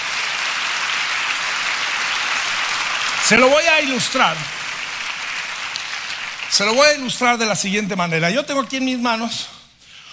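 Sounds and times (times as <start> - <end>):
audience applause: 0.0 - 7.7
speech: 3.3 - 4.6, 6.6 - 9.6.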